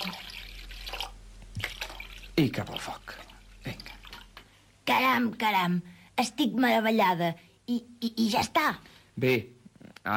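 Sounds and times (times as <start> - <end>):
water poured into a cooking pot for soup: 0.0 - 4.4
speech: 2.4 - 3.9, 5.0 - 10.1.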